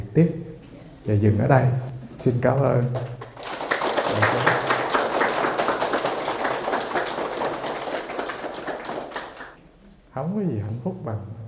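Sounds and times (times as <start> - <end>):
speech: 0.2 - 3.2, 10.2 - 11.4
audience applauding at the close of a talk session: 3.0 - 9.6.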